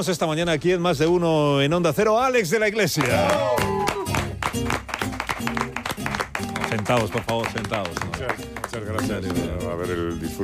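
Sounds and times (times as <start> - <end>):
speech: 0.0 - 3.8, 6.9 - 10.4
tonal voices or music: 1.4 - 10.4
audience applause welcoming a guest: 3.0 - 9.2.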